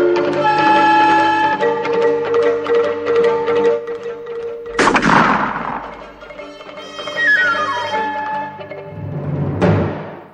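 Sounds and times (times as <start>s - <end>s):
steady musical tones: 0.0s - 9.4s
rifle shot fired by a rider on horseback: 4.7s - 6.2s
abrupt bang: 4.7s - 6.4s.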